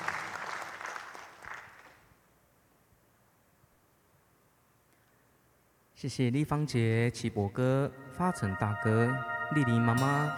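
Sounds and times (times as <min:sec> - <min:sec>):
audience applause: 0:00.0 - 0:02.0
speech: 0:06.0 - 0:10.3.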